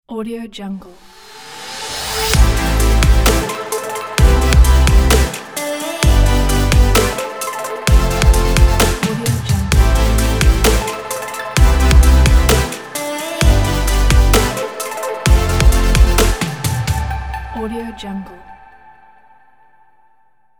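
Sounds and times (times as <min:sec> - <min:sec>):
future bass logo ident: 0:02.3 - 0:17.5.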